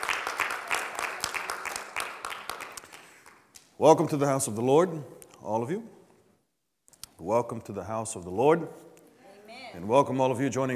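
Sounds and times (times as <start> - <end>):
audience clapping: 0.0 - 3.6
speech: 3.8 - 6.0, 7.2 - 8.8, 9.7 - 10.7.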